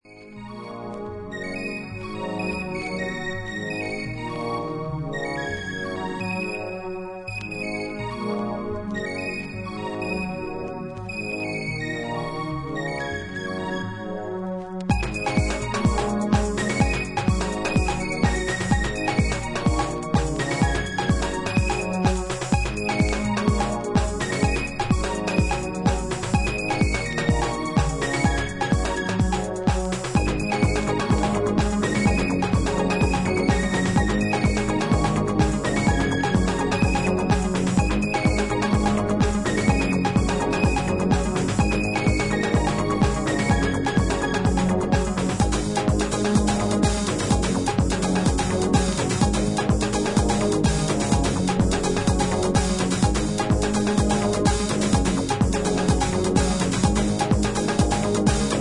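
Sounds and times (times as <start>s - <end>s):
experimental ambient music: 0.1s - 58.5s.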